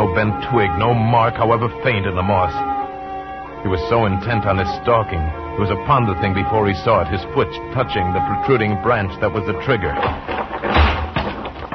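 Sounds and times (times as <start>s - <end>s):
speech: 0.2s - 2.8s, 3.6s - 10.8s
dead tree crashing to the ground: 9.8s - 11.7s.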